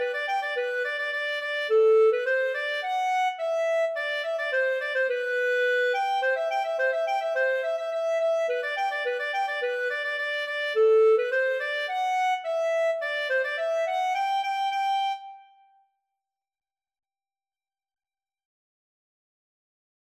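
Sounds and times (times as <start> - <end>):
polka music: 0.0 - 15.4.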